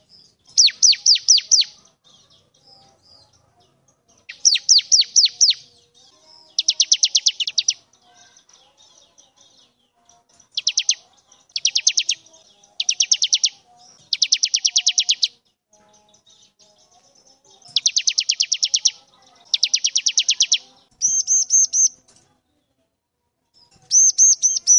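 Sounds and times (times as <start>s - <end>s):
bar-winged prinia singing vigorously: 0.0s - 1.8s, 4.3s - 8.0s, 10.3s - 22.0s, 23.8s - 24.7s.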